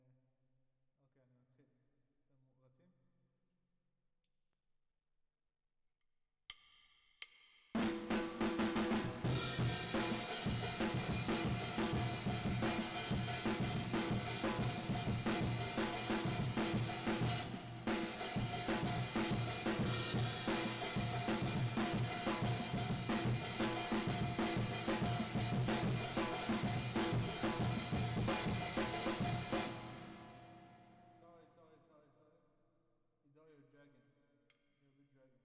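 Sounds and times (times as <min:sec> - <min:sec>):
drums with reverb: 0:07.8 - 0:30.8.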